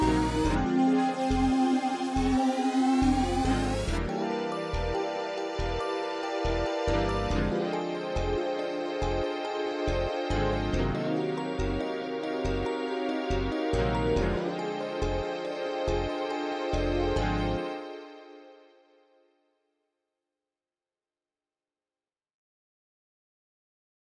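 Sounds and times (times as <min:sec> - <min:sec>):
MIDI dungeon music: 0:00.0 - 0:18.3.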